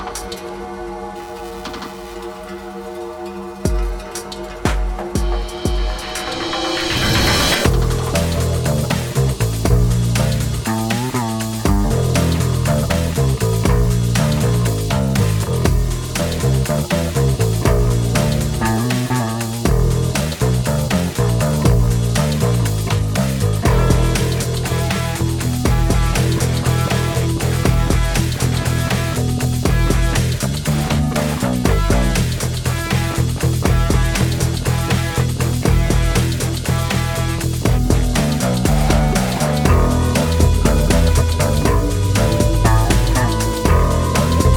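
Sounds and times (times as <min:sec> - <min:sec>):
noise: 0:00.9 - 0:44.5.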